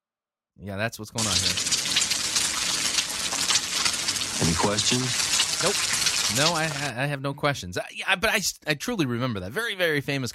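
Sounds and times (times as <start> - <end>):
speech: 0.6 - 1.8, 4.4 - 10.3
egg frying in oil in pan: 1.2 - 6.9.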